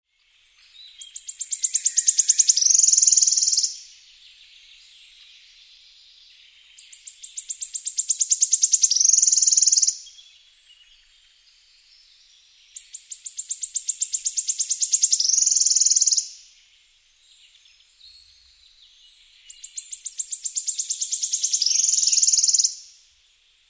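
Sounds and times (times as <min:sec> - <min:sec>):
wood warbler singing: 0:00.1 - 0:23.0.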